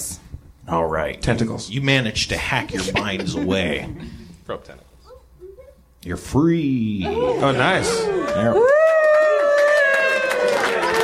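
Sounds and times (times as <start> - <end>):
speech: 0.7 - 4.9, 6.0 - 8.8
laughter: 2.4 - 4.2
crowd cheering sound effect: 7.0 - 11.0.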